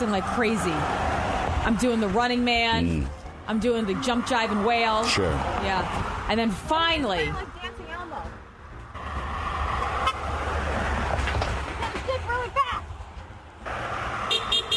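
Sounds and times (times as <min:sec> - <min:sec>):
speech: 0:00.0 - 0:07.6
busy traffic rumbling: 0:00.0 - 0:14.7
short car horn beeps: 0:14.3 - 0:14.7.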